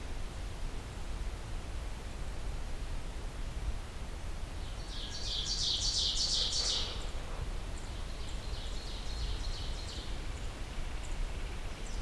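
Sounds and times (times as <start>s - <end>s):
low rumble and hiss in a park: 0.0s - 12.0s.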